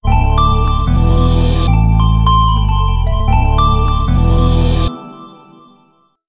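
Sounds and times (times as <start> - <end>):
shutdown sound: 0.0 - 4.9.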